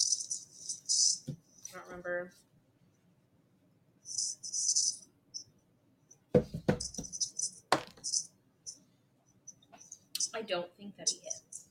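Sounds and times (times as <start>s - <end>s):
speech: 1.9s - 2.4s, 10.5s - 11.5s
dice clattering across a table: 7.7s - 8.2s.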